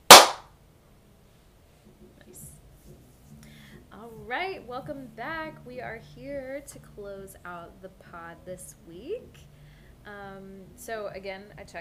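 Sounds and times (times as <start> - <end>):
single sync hand clap: 0.0 - 0.4
speech: 4.3 - 11.7.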